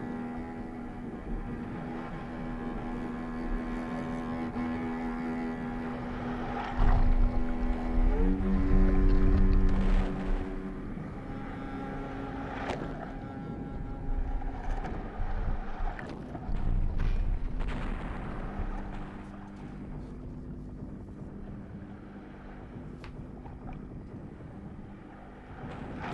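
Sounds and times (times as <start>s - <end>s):
engine droning: 0.0s - 26.1s
heavy low booms: 0.0s - 26.1s.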